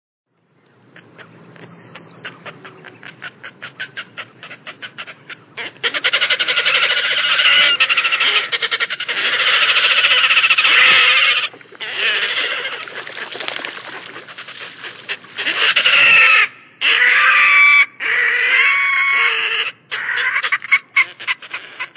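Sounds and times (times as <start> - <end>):
Red-necked grebe braying: 1.0 - 21.9.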